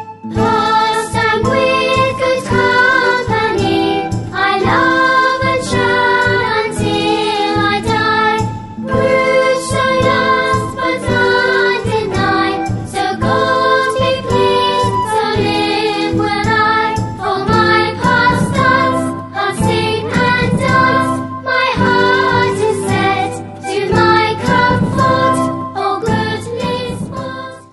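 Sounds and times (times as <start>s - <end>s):
vocal song: 0.3s - 27.7s.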